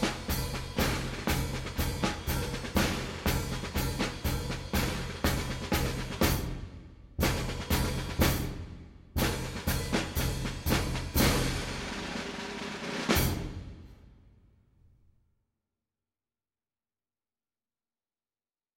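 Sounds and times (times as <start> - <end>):
fife and drum march: 0.0 - 13.8.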